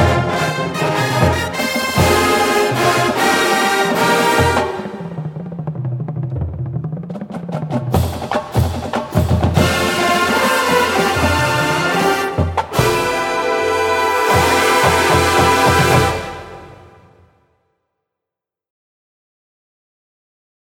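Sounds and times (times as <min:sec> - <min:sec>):
fanfare: 0:00.0 - 0:05.5, 0:09.5 - 0:17.4
percussion: 0:00.0 - 0:17.0.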